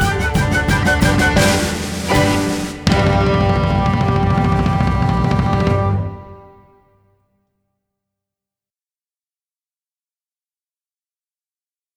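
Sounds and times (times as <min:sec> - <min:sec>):
dance mix music: 0:00.0 - 0:06.0.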